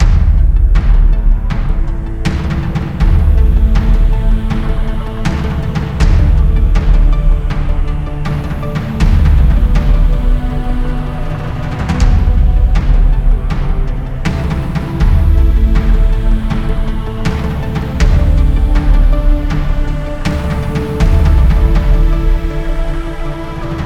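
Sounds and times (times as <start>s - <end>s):
tense combat music: 0.0s - 23.8s.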